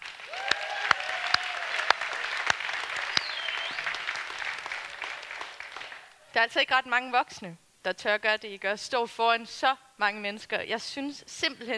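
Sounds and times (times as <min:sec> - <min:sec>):
audience applause for performers: 0:00.0 - 0:06.3
speech: 0:06.4 - 0:11.7.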